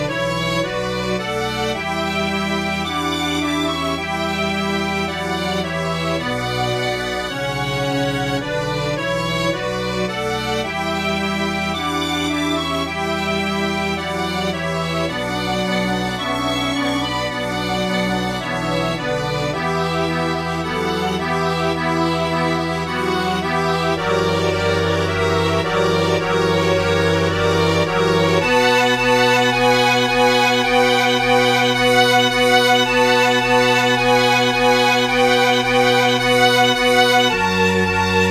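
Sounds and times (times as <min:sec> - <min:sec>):
tango music: 0:00.0 - 0:38.2.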